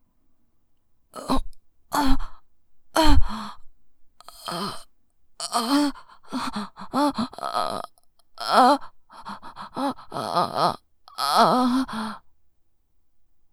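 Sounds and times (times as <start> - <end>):
person moaning: 1.2 - 2.3, 4.3 - 4.8, 5.4 - 12.2.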